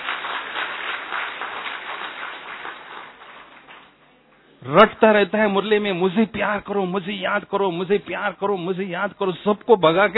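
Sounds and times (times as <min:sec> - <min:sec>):
audience clapping: 0:00.0 - 0:04.1
speech: 0:04.6 - 0:10.1.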